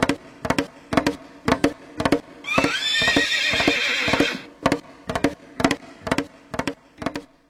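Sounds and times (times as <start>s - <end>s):
pony hooves clip-clopping: 0.0s - 7.3s
pony whinnying: 2.5s - 4.5s.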